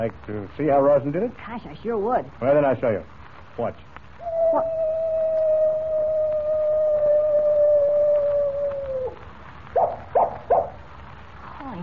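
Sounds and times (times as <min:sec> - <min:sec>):
speech: 0:00.0 - 0:04.8
coyote howling: 0:04.2 - 0:10.8.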